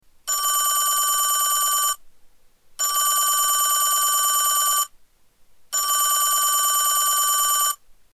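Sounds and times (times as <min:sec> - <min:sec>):
telephone: 0:00.3 - 0:02.0, 0:02.8 - 0:04.9, 0:05.8 - 0:07.8.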